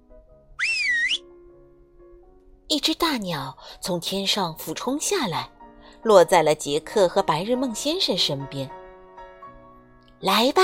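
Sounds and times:
loud two-finger whistle: 0.6 - 1.2
speech: 2.8 - 8.8, 10.2 - 10.6.

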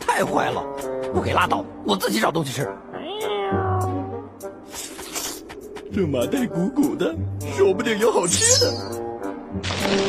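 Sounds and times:
speech: 0.2 - 2.9, 5.9 - 10.0
cat yowling after being hit: 3.0 - 4.2.

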